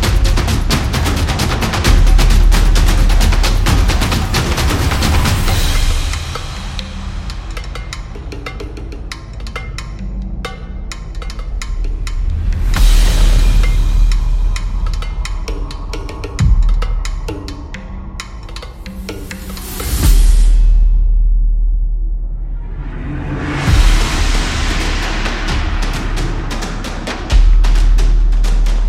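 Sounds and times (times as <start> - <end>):
tribal percussion drums: 0.0 - 28.8.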